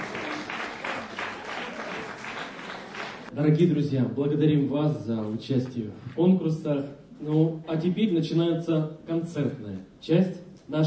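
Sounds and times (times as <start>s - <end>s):
audience applause: 0.0s - 3.3s
speech: 3.4s - 10.8s.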